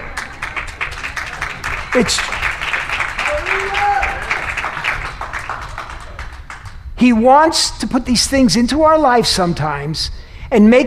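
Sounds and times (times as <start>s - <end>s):
audience applause: 0.0s - 6.8s
speech: 2.0s - 2.4s, 7.0s - 10.8s.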